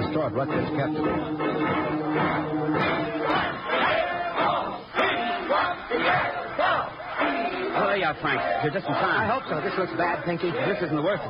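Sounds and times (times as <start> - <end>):
speech: 0.1 - 3.6, 8.0 - 11.2
angry crowd of rooters shouting and jeering: 2.8 - 11.2.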